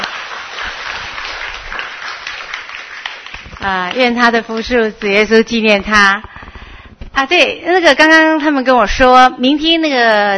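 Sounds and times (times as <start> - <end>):
audience applause: 0.0 - 4.1
speech: 3.6 - 6.3, 7.2 - 10.3.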